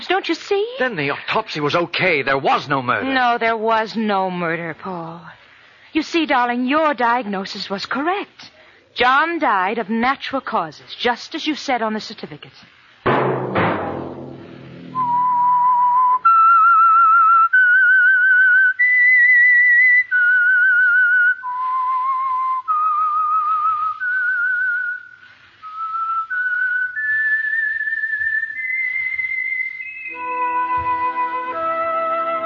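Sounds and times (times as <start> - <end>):
speech: 0.1 - 12.8
solo whistled theme tune for a mystery drama: 14.9 - 32.4
layered instrumental notes: 30.1 - 32.4.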